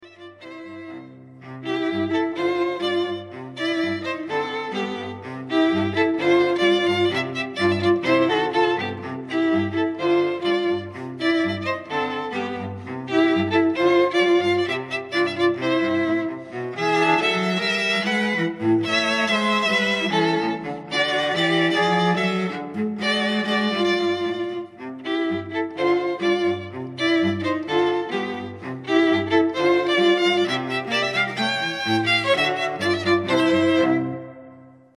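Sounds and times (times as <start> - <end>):
string trio playing: 0.0 - 34.8.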